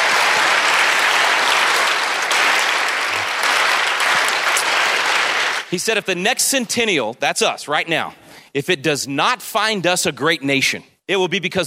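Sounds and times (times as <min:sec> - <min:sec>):
audience applause: 0:00.0 - 0:05.8
speech: 0:05.7 - 0:11.6.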